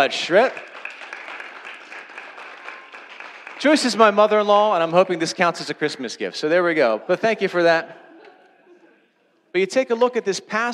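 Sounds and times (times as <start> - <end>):
speech: 0.0 - 0.7, 3.6 - 8.0, 9.5 - 10.7
audience applause: 0.0 - 4.5.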